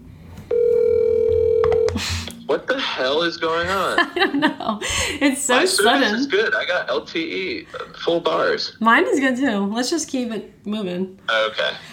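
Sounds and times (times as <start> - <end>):
phone dialing tone: 0.5 - 2.0, 5.8 - 6.3
speech: 2.0 - 11.9.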